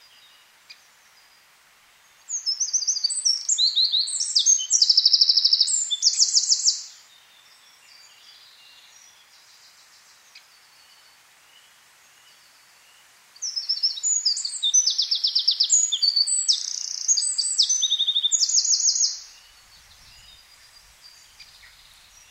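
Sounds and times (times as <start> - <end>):
Eurasian wren singing: 2.3 - 7.1, 13.4 - 22.2.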